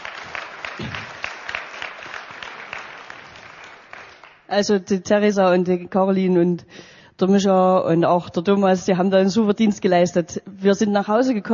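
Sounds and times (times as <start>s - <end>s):
audience applause: 0.0s - 4.5s
speech: 4.5s - 11.5s.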